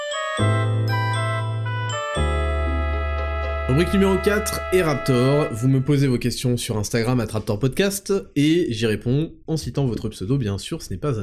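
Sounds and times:
podcast segment jingle of synth chords over a bass tone: 0.4s - 6.3s
speech: 3.7s - 11.2s.

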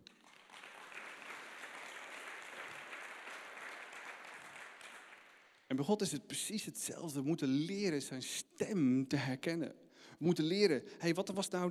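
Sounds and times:
audience applause: 0.0s - 5.7s
speech: 5.7s - 11.6s.

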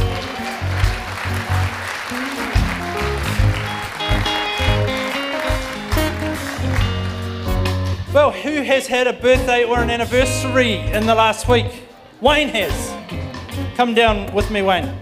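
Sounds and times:
church congregation clapping to welcome guests: 0.0s - 7.8s
speech: 8.6s - 13.2s, 13.8s - 14.9s.

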